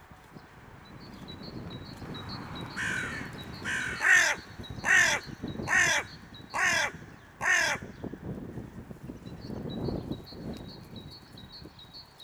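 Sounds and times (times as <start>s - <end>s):
hooded crow Corvus cornix: 2.8s - 8.0s.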